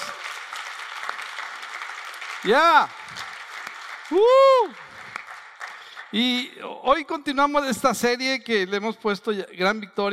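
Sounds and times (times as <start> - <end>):
audience applause: 0.0 - 6.4
speech: 2.4 - 3.2, 4.1 - 4.8, 6.1 - 10.1.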